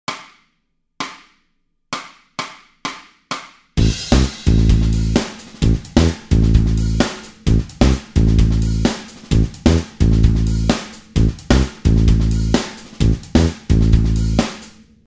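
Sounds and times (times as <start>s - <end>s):
backing track: 3.8s - 14.8s.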